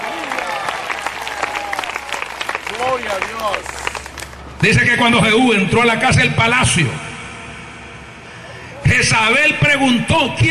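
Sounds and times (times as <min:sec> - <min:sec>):
audience applause: 0:00.0 - 0:04.6
speech: 0:03.0 - 0:03.9, 0:04.6 - 0:07.0, 0:09.0 - 0:10.4.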